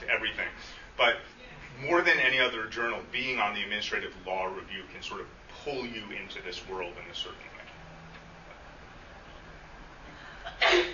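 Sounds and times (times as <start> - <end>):
speech: 0.2 - 7.5
sneeze: 10.5 - 10.9.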